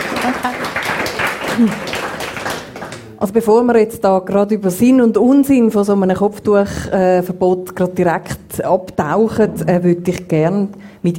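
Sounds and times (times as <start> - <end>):
audience at a German-language discussion event clapping: 0.0 - 3.4
speech: 1.6 - 1.9, 3.2 - 11.1.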